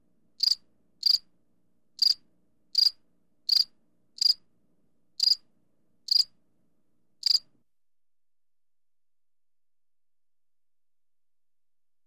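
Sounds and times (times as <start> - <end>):
cricket chirps: 0.4 - 1.3, 2.0 - 4.4, 5.2 - 5.4, 6.1 - 6.4, 7.2 - 7.5.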